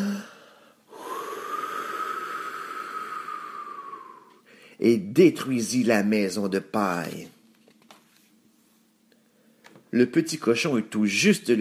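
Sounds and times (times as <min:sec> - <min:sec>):
wolf blowing with all its strength: 0:00.0 - 0:04.8
speech: 0:04.8 - 0:07.4, 0:09.9 - 0:11.5.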